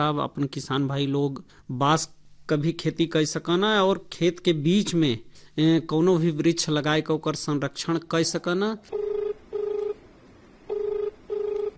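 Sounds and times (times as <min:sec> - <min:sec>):
speech: 0:00.0 - 0:09.0
incoming telephone call ringing: 0:08.9 - 0:10.0, 0:10.7 - 0:11.7.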